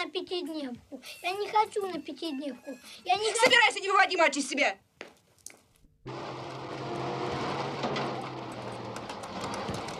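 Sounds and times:
speech: 0.1s - 4.9s, 6.0s - 6.6s
bus driving, engine running: 6.1s - 9.9s.

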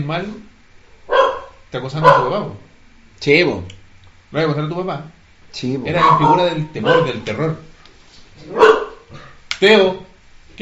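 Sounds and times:
speech: 0.0s - 0.6s, 1.7s - 7.7s, 8.4s - 10.6s
dog yipping: 1.1s - 2.5s, 5.9s - 7.2s, 8.4s - 9.1s
dog barking: 1.1s - 2.6s, 5.9s - 7.4s, 8.4s - 9.4s.

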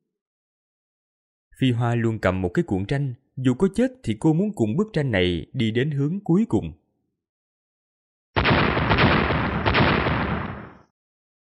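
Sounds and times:
speech: 1.6s - 6.8s
explosion booms: 8.4s - 10.9s.

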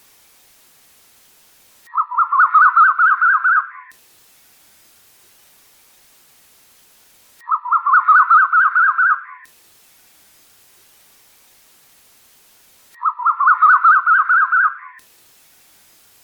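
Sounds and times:
bird warbling: 1.9s - 3.9s, 7.4s - 9.5s, 13.0s - 15.0s.

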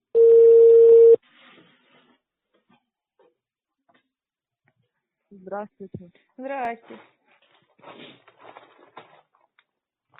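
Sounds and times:
telephone line tone while connecting operator: 0.1s - 1.2s
speech: 5.4s - 7.2s.

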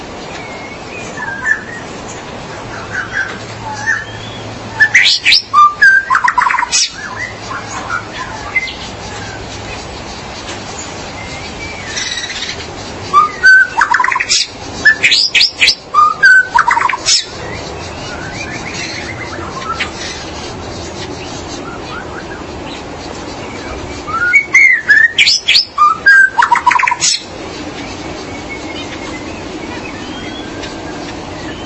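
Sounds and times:
magpie-robin or shama song: 0.0s - 31.6s.

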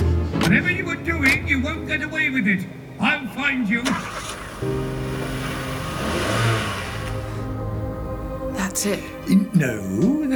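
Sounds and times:
speech: 0.5s - 5.4s, 8.8s - 10.3s
car engine revving and driving off at night in Nevada near Area 51: 3.8s - 8.0s.

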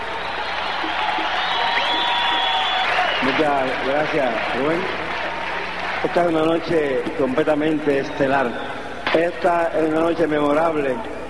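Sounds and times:
audience applause: 0.0s - 7.0s
speech: 3.2s - 5.0s, 6.0s - 11.2s.

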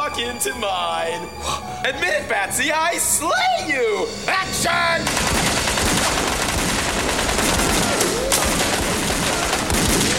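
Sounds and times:
speech: 0.1s - 5.5s
guns firing blanks on a film set: 5.1s - 10.1s.

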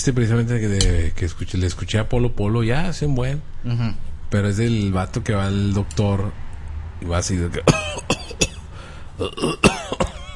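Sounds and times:
speech: 0.0s - 6.4s, 7.0s - 8.4s, 9.2s - 10.0s
person coughing harshly: 7.6s - 10.3s.

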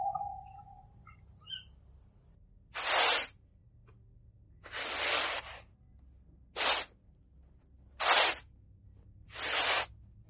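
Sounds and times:
digging in the ground: 2.7s - 3.3s, 4.7s - 5.7s, 6.5s - 6.9s, 7.9s - 8.5s, 9.3s - 9.9s.

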